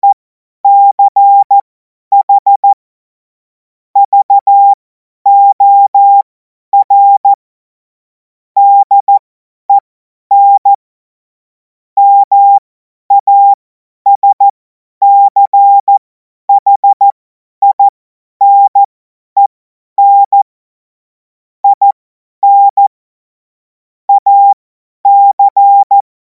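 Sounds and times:
CW Morse code beeps: 0:00.0 - 0:02.8, 0:04.0 - 0:07.4, 0:08.6 - 0:10.8, 0:12.0 - 0:20.5, 0:21.6 - 0:22.9, 0:24.1 - 0:26.0.

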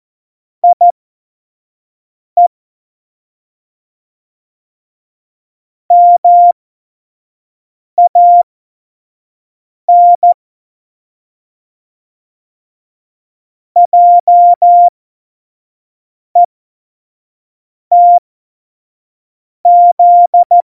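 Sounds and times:
CW Morse code at tempo 70: 0:00.6 - 0:00.9, 0:05.9 - 0:06.5, 0:08.0 - 0:08.4, 0:09.9 - 0:10.4, 0:13.8 - 0:14.9, 0:17.9 - 0:18.2, 0:19.7 - 0:20.6.

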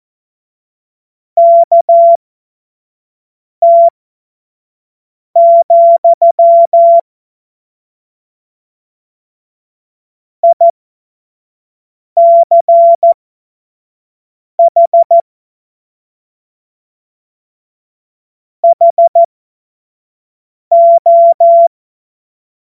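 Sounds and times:
Morse code course tones: 0:01.4 - 0:02.2, 0:03.7 - 0:03.9, 0:05.4 - 0:07.0, 0:12.2 - 0:13.1, 0:14.6 - 0:15.2, 0:18.7 - 0:19.3, 0:20.7 - 0:21.7.

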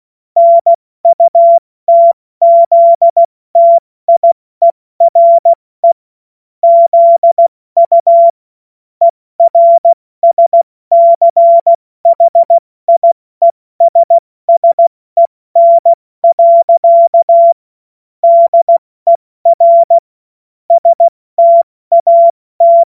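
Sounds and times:
CW Morse code beeps: 0:00.4 - 0:06.0, 0:06.6 - 0:08.4, 0:09.4 - 0:13.2, 0:13.8 - 0:14.9, 0:15.6 - 0:17.6, 0:18.2 - 0:20.0, 0:20.7 - 0:22.8.

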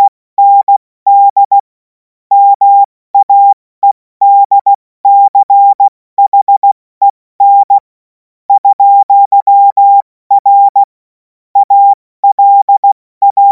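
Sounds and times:
CW Morse code beeps: 0:00.0 - 0:01.6, 0:02.3 - 0:06.8, 0:07.4 - 0:07.8, 0:08.5 - 0:10.9, 0:11.6 - 0:13.5.

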